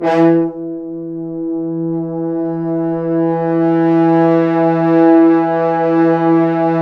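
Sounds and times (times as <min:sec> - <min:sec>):
French horns sforzando: 0:00.0 - 0:06.7.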